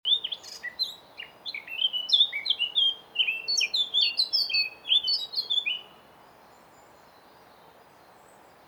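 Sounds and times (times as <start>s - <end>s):
Eurasian blackcap Sylvia atricapilla singing: 0.1s - 5.9s.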